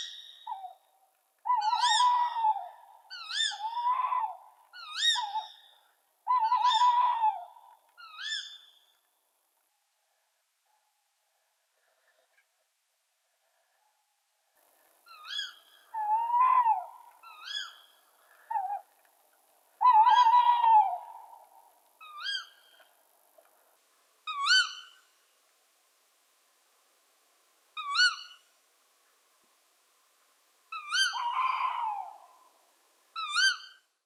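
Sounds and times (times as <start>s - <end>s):
owl: 0.0s - 9.0s, 15.0s - 18.9s, 19.8s - 22.9s, 24.3s - 25.1s, 27.8s - 28.5s, 30.7s - 32.6s, 33.2s - 33.9s.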